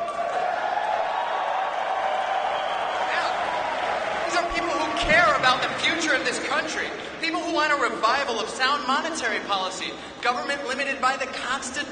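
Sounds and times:
crowd of Ron Paul supporters cheering: 0.0s - 7.4s
speech: 4.6s - 11.9s.

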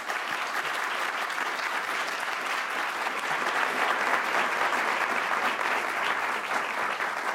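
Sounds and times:
audience round of applause: 0.0s - 7.3s.

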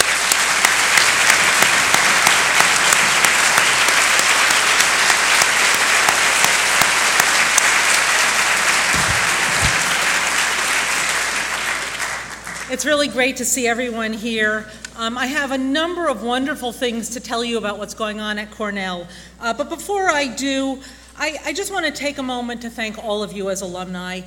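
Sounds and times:
large audience applause for standing trustees: 0.0s - 12.7s
speech: 12.8s - 24.2s.

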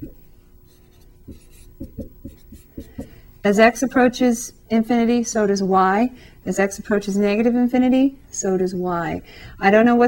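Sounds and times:
pen strokes drawing a dotted line on a graph: 0.0s - 3.2s
speech: 3.4s - 10.0s.

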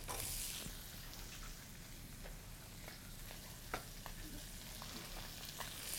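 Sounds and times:
garlic, ginger and vegetables frying in hot oil for mapo tofu: 0.0s - 5.9s.

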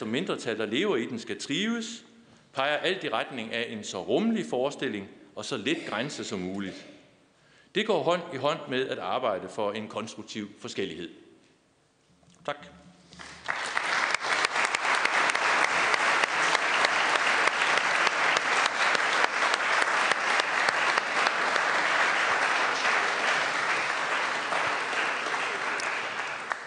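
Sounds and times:
speech: 0.0s - 7.0s, 7.7s - 11.2s, 12.4s - 12.8s
audience applause: 13.2s - 26.6s.

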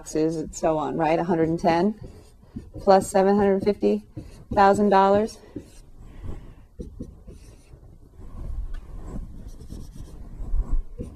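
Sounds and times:
speech: 0.0s - 2.2s, 2.8s - 5.6s
pen scratching across a surface writing a math equation: 0.1s - 11.1s.

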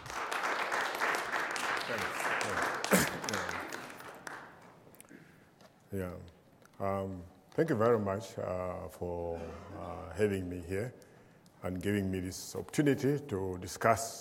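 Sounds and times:
audience applause welcoming a professor: 0.0s - 4.8s
speech: 1.9s - 3.5s, 5.9s - 14.2s.

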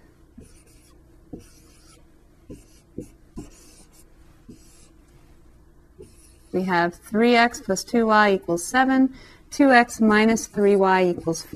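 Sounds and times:
handwriting strokes writing out an augmented matrix: 0.4s - 5.0s, 6.0s - 6.7s, 10.2s - 11.5s
speech: 6.6s - 11.5s.

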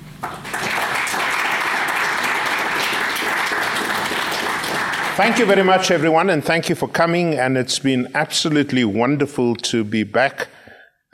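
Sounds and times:
audience applause welcoming a guest professor to a lecture: 0.1s - 6.3s
speech: 5.2s - 11.1s.

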